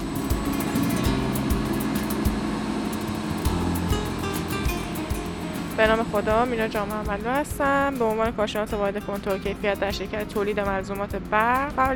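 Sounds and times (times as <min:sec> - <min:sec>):
CNC milling machines and CNC lathes running in a factory machining workshop: 0:00.0 - 0:07.4
speech: 0:05.8 - 0:11.9.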